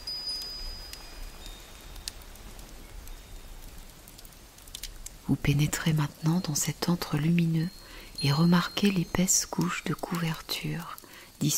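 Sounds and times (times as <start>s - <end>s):
gentle steady rain: 0.0s - 11.5s
speech: 5.3s - 11.5s.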